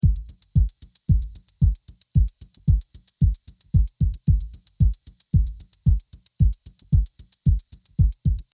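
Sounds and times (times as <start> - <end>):
kick drum loop: 0.0 - 8.5.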